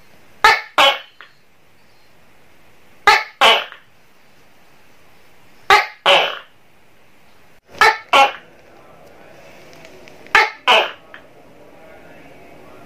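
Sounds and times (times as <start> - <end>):
Tokay gecko calls: 0.4 - 2.1, 3.0 - 3.9, 5.6 - 6.6, 7.7 - 8.5, 10.3 - 11.3.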